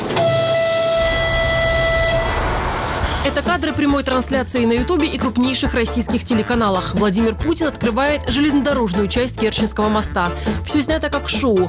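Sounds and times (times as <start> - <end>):
train whistle: 0.1 - 3.2
speech: 3.4 - 11.6.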